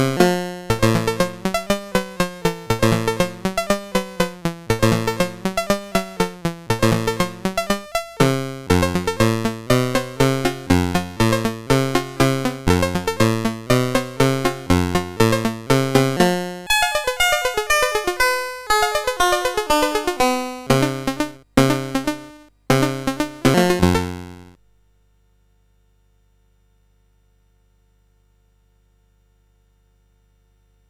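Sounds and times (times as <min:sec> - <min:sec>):
boogie rag on SID CSG8580R5 sound chip: 0:00.0 - 0:24.6.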